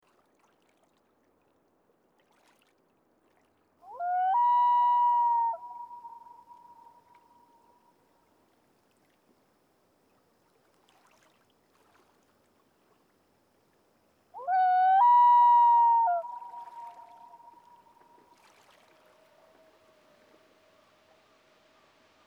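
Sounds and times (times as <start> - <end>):
common loon wail: 3.9 - 7.0, 14.4 - 17.8.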